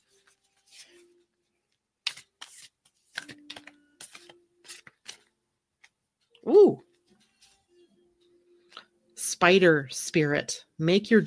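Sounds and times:
very large thick deck of cards rustling and riffling: 0:00.0 - 0:06.3
speech: 0:09.4 - 0:11.2.

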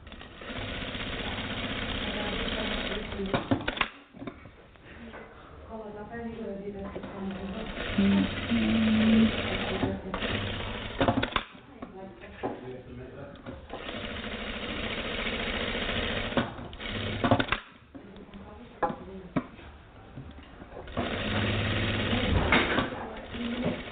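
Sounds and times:
sewing machine stitching ten parallel rows: 0:00.0 - 0:04.0, 0:07.0 - 0:11.6, 0:13.6 - 0:17.8, 0:20.8 - 0:23.8.

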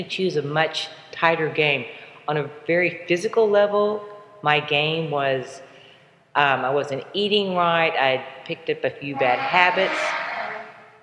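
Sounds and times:
speech: 0:00.0 - 0:05.7, 0:06.4 - 0:10.2
construction noise: 0:09.1 - 0:11.0.

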